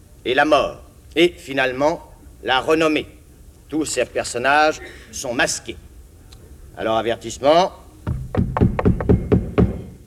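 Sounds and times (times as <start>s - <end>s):
speech: 0.2s - 5.8s, 6.8s - 8.4s
dull resonant knocks before a theatre curtain rises: 8.0s - 10.0s.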